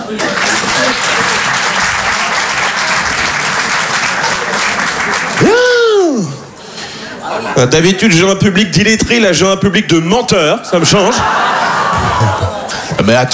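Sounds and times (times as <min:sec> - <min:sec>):
laughter: 0:00.0 - 0:02.3, 0:03.0 - 0:08.3, 0:10.6 - 0:13.3
audience applause: 0:00.0 - 0:06.0, 0:11.2 - 0:13.3
speech: 0:00.1 - 0:00.5, 0:07.6 - 0:11.6, 0:12.2 - 0:13.3.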